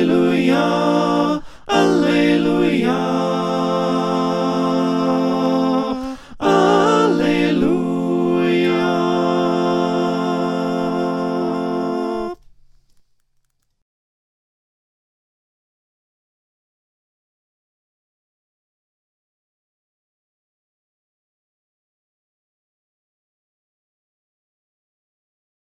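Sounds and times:
SATB four-part choir singing: 0.0 - 12.4.

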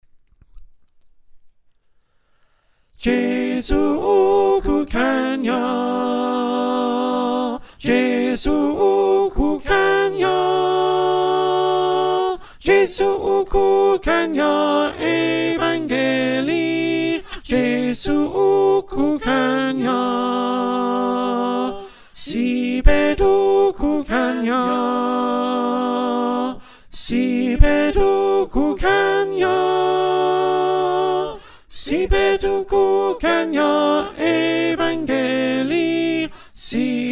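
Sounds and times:
alto choir singing: 3.0 - 37.1.

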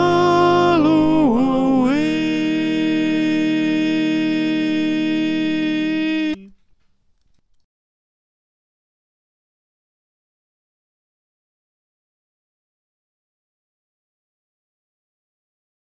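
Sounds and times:
choir with soprano: 0.0 - 6.5.

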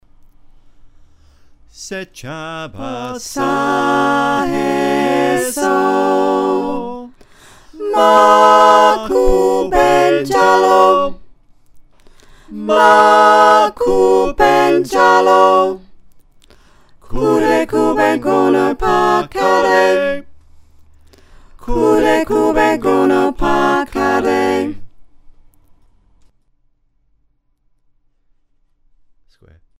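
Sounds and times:
soprano alto tenor bass choir singing: 2.2 - 11.2, 12.5 - 15.8, 17.0 - 20.3, 21.6 - 24.8.

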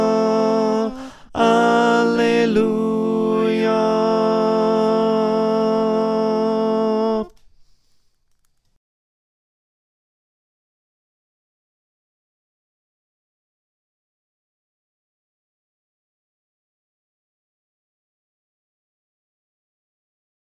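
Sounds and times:
choir singing: 0.0 - 7.3
tenor voice: 0.0 - 7.3.

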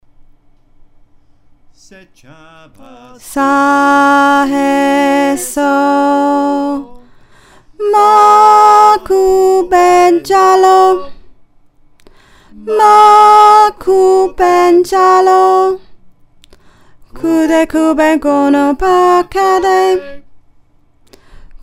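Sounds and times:
alto choir singing: 2.6 - 7.2, 7.8 - 11.1, 12.6 - 15.8, 17.2 - 20.2.

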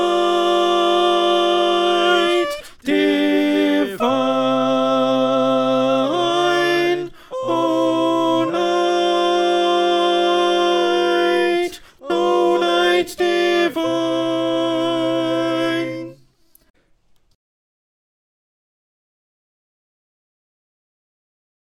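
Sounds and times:
alto choir singing: 0.0 - 16.3.

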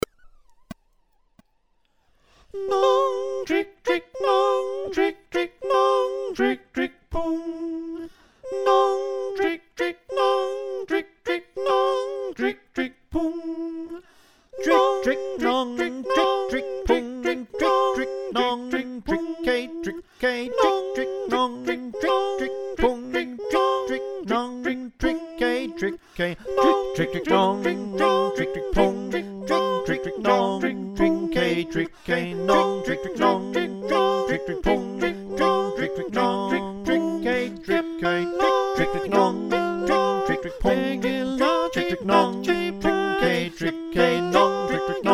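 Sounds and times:
soprano alto tenor bass choir singing: 2.5 - 13.0, 14.6 - 45.1.

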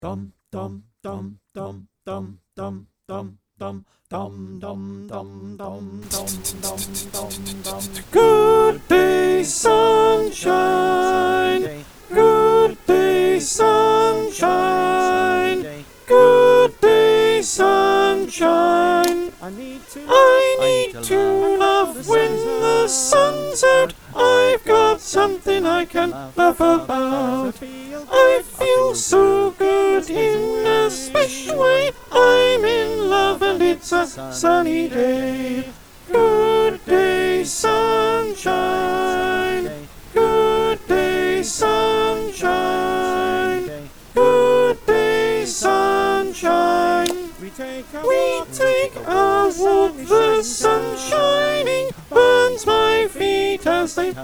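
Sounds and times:
choir with soprano: 6.0 - 54.2.

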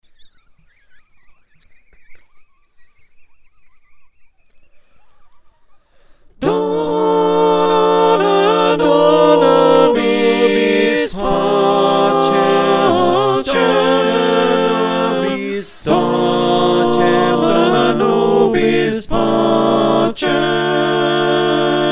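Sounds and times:
SATB four-part choir singing: 6.4 - 21.8.

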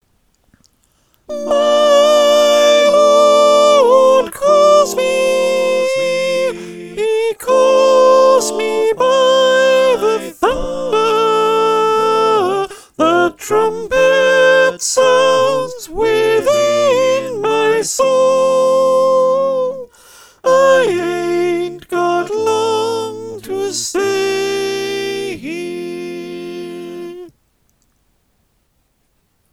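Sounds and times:
choir with soprano: 1.3 - 19.9, 20.5 - 27.3.

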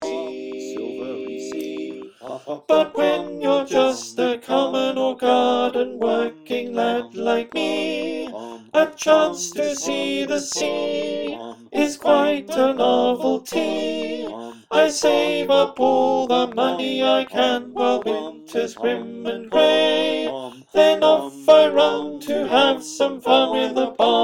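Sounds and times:
alto choir singing: 0.0 - 24.2.

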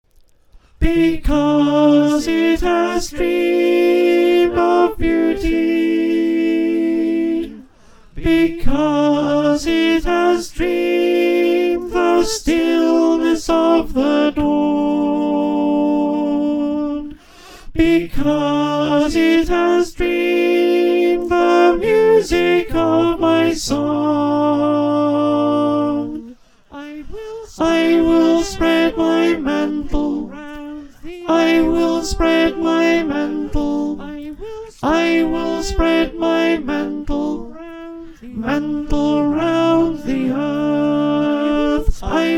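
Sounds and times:
choir singing in F: 0.8 - 17.1, 17.8 - 42.3.

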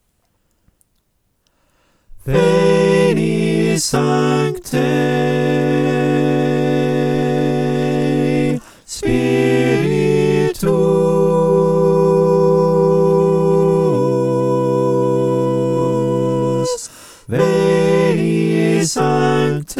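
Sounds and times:
soprano alto tenor bass choir singing: 2.2 - 19.7.

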